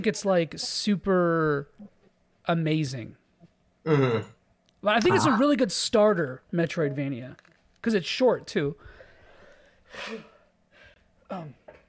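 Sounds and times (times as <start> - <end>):
speech: 0.0 - 3.2, 3.8 - 9.0, 9.9 - 10.3, 11.3 - 11.6
person sneezing: 5.0 - 5.4.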